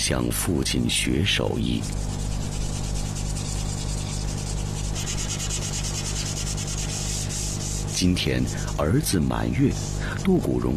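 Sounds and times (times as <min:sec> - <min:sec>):
speech: 0:00.0 - 0:02.2, 0:08.0 - 0:10.7
wood being sanded: 0:01.4 - 0:10.7.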